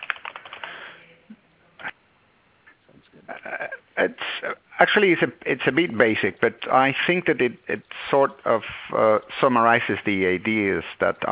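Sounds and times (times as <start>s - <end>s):
typing a URL on a computer keyboard: 0.0s - 0.8s
speech: 4.0s - 11.3s.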